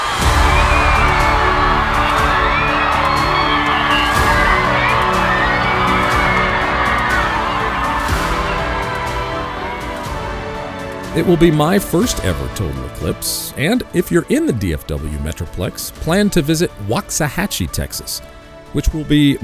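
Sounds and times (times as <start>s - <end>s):
crowd cheering during total solar eclipse: 0.0s - 12.4s
speech: 11.2s - 19.4s.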